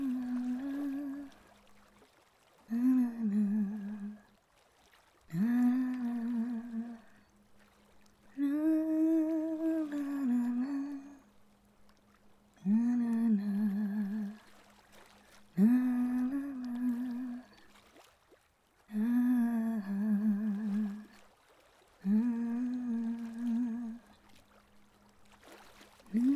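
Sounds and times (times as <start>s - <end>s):
soft relaxing humming: 0.0s - 26.3s
waves: 0.0s - 26.3s.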